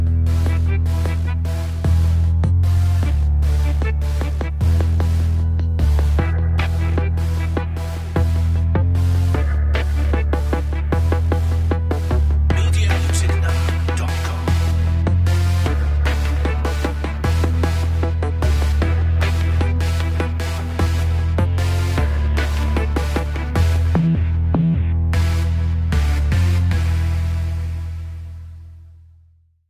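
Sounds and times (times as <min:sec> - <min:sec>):
urban jungle music without drums: 0:00.0 - 0:27.6.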